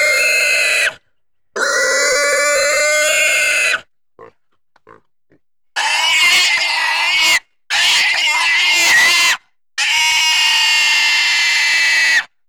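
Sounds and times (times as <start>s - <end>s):
pig squealing: 0.0s - 1.0s, 1.6s - 3.8s, 5.8s - 12.3s.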